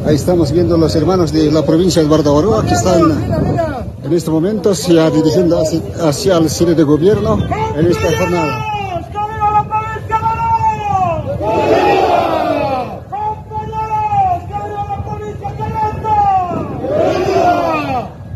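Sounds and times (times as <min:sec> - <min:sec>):
speech: 0:00.1 - 0:08.7
protest crowd shouting: 0:07.7 - 0:18.3.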